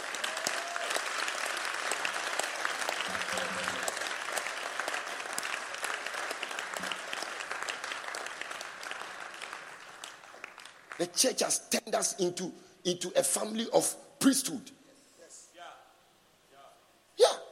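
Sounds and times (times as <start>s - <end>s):
audience applause: 0.0s - 11.1s
speech: 11.0s - 14.8s.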